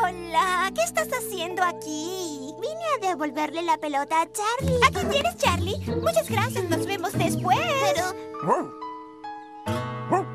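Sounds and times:
speech: 0:00.3 - 0:08.9
dog barking: 0:08.4 - 0:08.8, 0:10.1 - 0:10.3.

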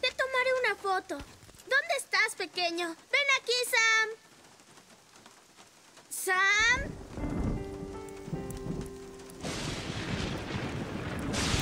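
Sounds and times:
speech: 0:00.8 - 0:04.3, 0:06.2 - 0:07.0
thunder in a heavy rainstorm: 0:06.8 - 0:11.6.

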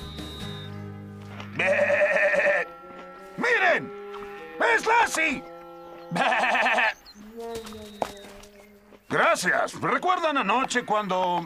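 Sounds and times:
sheep bleating: 0:01.5 - 0:05.4, 0:06.1 - 0:07.4
speech: 0:04.8 - 0:05.5, 0:09.2 - 0:11.4.

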